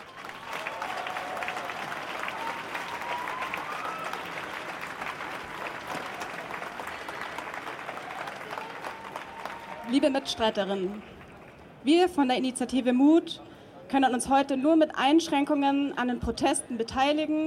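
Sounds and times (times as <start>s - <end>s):
audience applause: 0.0s - 11.6s
speech: 9.9s - 11.1s, 11.8s - 17.4s.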